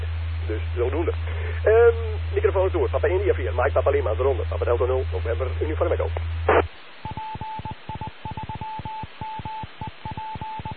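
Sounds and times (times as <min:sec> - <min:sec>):
speech: 0:00.5 - 0:06.2
radio repeater end-of-transmission signal: 0:07.0 - 0:10.7.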